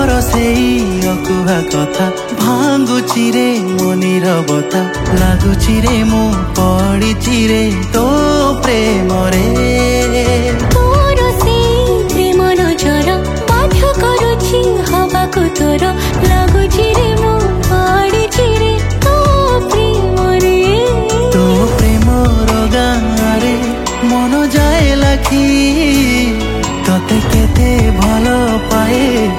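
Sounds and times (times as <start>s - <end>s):
studio version new romantic song: 0.0s - 29.3s.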